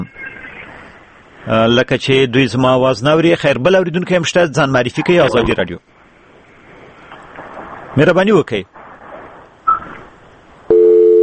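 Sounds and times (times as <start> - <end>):
faint hiss: 0.1 - 10.7
speech: 1.4 - 6.0, 8.0 - 8.8
telephone busy tone after a call to a radio program was cut off: 10.7 - 11.2.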